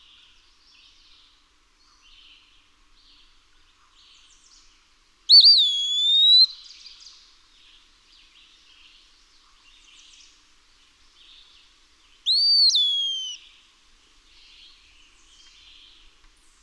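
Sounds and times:
Eastern wood-pewee whistled pee-a-wee call: 0:05.3 - 0:06.7, 0:12.2 - 0:13.5.

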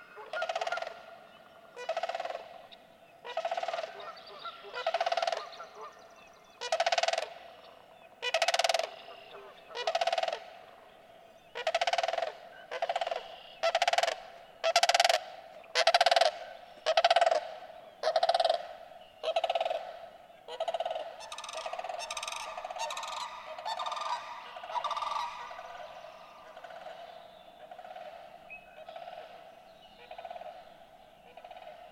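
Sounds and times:
sandhill crane calling: 0:00.0 - 0:31.9.

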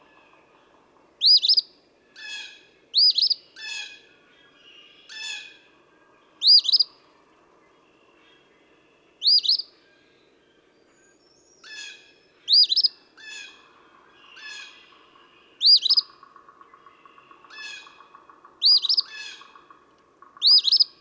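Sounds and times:
other birds calling and trilling: 0:01.2 - 0:01.6, 0:02.2 - 0:04.0, 0:06.4 - 0:06.9, 0:09.2 - 0:09.7, 0:11.6 - 0:15.0, 0:15.6 - 0:20.9.

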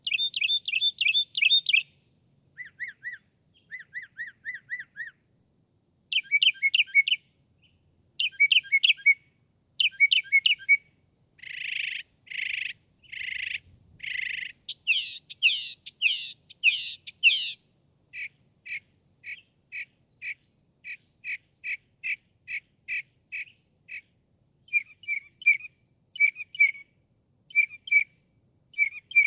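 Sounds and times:
Northern Mockingbird singing: 0:00.0 - 0:02.0, 0:02.6 - 0:05.2, 0:06.1 - 0:09.2, 0:09.8 - 0:10.8, 0:11.4 - 0:26.9, 0:27.5 - 0:29.2.

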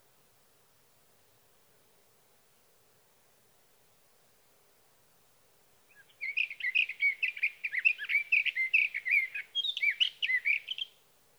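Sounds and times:
Sage thrasher warbling song: 0:05.9 - 0:10.9.

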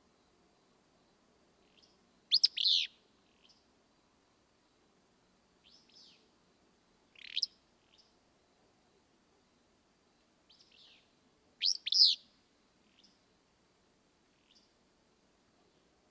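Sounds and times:
Willow Flycatcher calling: 0:01.8 - 0:03.6, 0:07.1 - 0:08.1, 0:10.5 - 0:12.3.

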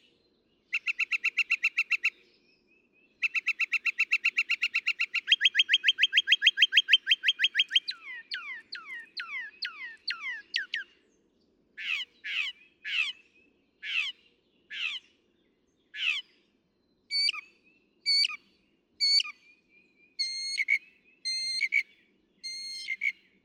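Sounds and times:
northern mockingbird song: 0:00.6 - 0:23.4.

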